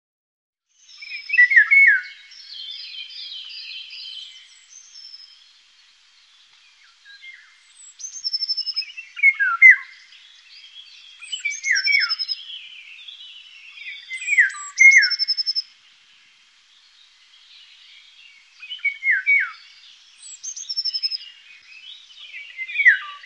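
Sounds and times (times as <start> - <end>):
Eurasian golden oriole song of fluty swooping notes: 0.8 - 5.4, 6.8 - 15.7, 18.6 - 23.2.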